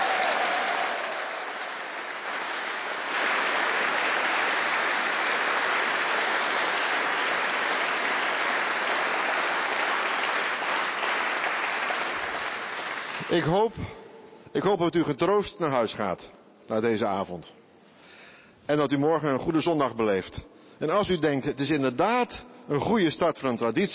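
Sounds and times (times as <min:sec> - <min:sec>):
audience applause: 0:00.0 - 0:13.5
speech: 0:13.4 - 0:17.6, 0:18.7 - 0:23.9.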